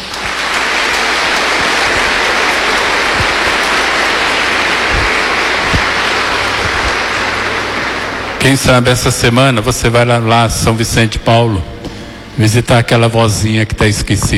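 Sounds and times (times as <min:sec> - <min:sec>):
round of applause: 0:00.0 - 0:10.0
speech: 0:08.4 - 0:11.7, 0:12.4 - 0:14.3.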